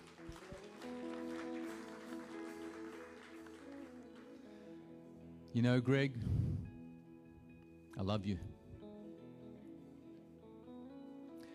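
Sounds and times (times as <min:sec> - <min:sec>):
crowd clapping: 0:00.0 - 0:05.2
speech: 0:05.5 - 0:06.4, 0:08.0 - 0:08.6.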